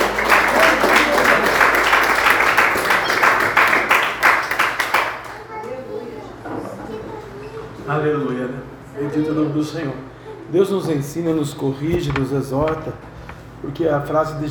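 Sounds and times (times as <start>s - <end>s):
audience applause: 0.0s - 5.5s
speech: 9.2s - 14.5s.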